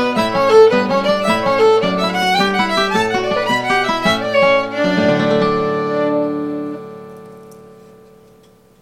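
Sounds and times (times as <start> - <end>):
fiddle playing a jig: 0.0 - 7.0
guitar: 0.0 - 8.8.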